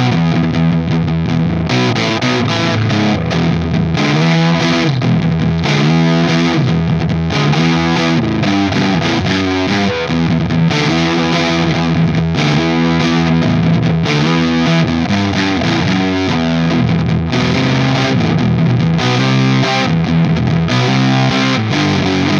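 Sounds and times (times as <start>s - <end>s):
overdriven electric guitar with humbucker bridge pickup through 12AT7 tube amp and V30 speaker: 0.0s - 22.3s.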